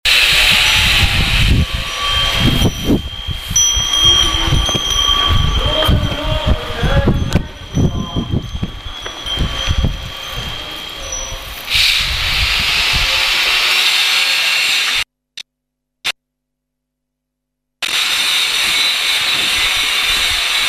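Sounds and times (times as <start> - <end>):
drills: 0.0 - 5.6, 9.0 - 15.0, 17.8 - 20.6
buddhists: 0.1 - 15.0.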